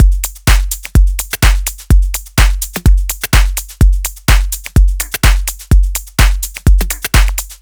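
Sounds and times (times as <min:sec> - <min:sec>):
drums: 0:00.0 - 0:07.5.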